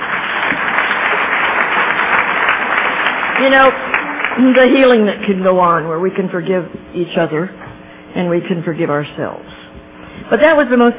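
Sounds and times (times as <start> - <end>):
audience applause: 0.0 - 5.0
speech: 3.4 - 9.6, 10.3 - 10.9.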